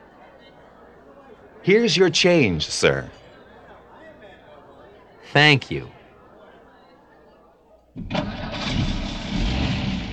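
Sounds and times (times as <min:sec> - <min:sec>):
speech: 0:01.6 - 0:03.2, 0:05.3 - 0:06.0, 0:08.0 - 0:08.3
car engine starting and running as the car drives: 0:08.0 - 0:10.1.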